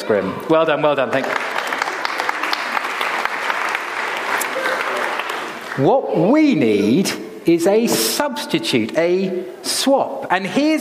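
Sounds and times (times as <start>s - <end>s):
speech: 0.1s - 1.4s, 5.8s - 10.7s
crowd clapping: 0.8s - 6.1s.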